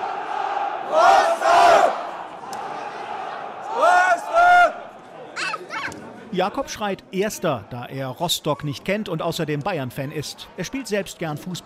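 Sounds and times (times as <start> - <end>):
football fans chanting and roaring: 0.0 - 4.9
crowd noise: 0.0 - 11.6
speech: 0.9 - 1.1, 6.4 - 11.6.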